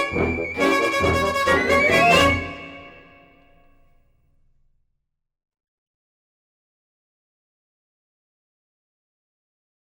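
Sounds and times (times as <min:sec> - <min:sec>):
neoclassical music: 0:00.0 - 0:03.8.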